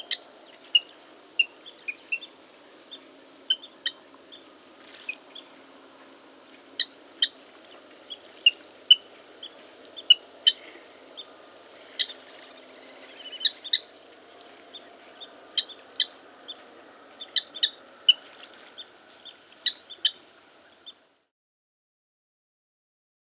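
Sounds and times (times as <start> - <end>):
water rail calling: 0.0 - 21.0.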